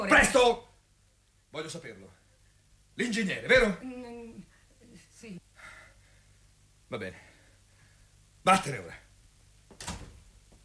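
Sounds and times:
speech: 0.0s - 0.7s, 1.5s - 2.2s, 3.0s - 4.5s, 5.2s - 5.4s, 6.9s - 7.3s, 8.4s - 9.0s
door closing: 9.7s - 10.3s.

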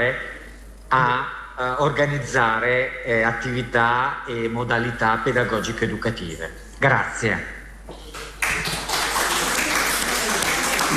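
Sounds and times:
speech: 0.0s - 0.3s, 0.9s - 8.2s
audience applause in a hall: 8.4s - 10.9s.

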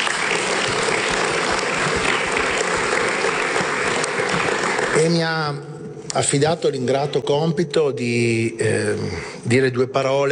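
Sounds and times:
crowd applause: 0.0s - 5.4s
speech: 5.0s - 10.3s.

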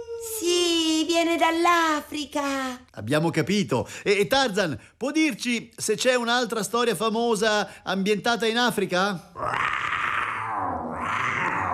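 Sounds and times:
speech: 1.2s - 9.9s
lion roaring: 9.4s - 11.7s.

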